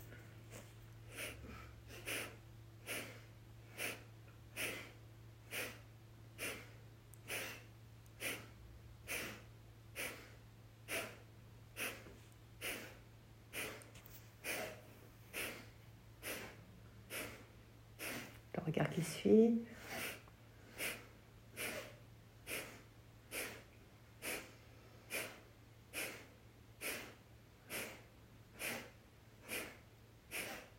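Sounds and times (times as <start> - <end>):
alternate nostril breathing during a yoga breathing exercise: 0.0 - 18.5, 19.7 - 30.7
low constant hum: 0.0 - 30.7
speech: 18.8 - 19.7.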